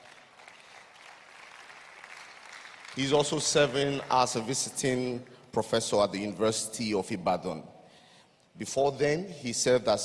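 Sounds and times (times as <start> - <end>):
audience clapping: 0.0 - 5.2
speech: 3.0 - 7.8, 8.6 - 10.0.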